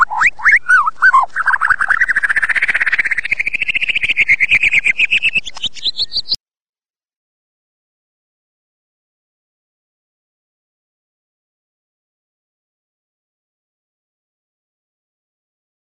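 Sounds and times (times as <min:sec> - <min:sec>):
white-rumped shama singing whistled notes, chattering and trills: 0:00.0 - 0:06.4.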